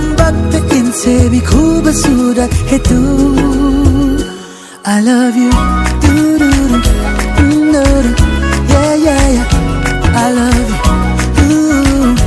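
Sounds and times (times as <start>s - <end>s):
Hindi ringtone: 0.2s - 12.2s.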